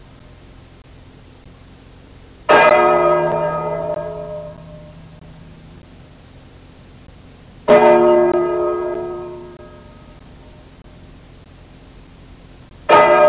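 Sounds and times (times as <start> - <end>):
bell: 2.5 - 5.2, 7.7 - 10.0.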